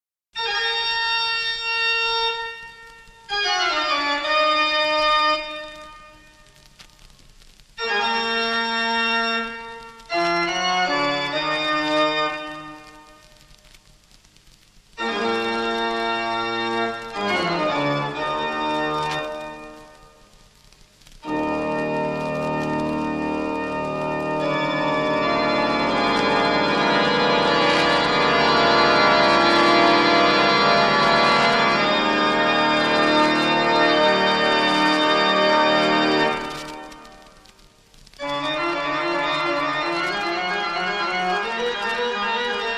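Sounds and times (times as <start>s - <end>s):
classical piece: 0.4s - 14.2s, 14.9s - 20.3s, 21.0s - 42.7s.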